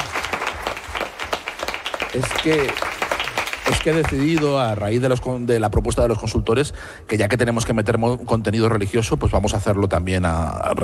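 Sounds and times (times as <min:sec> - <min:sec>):
applause: 0:00.0 - 0:04.8
speech: 0:02.1 - 0:03.0, 0:03.7 - 0:10.8.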